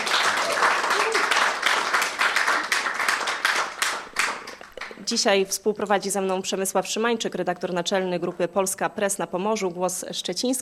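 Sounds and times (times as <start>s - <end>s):
live audience applause: 0.0s - 5.0s
speech: 5.1s - 10.6s.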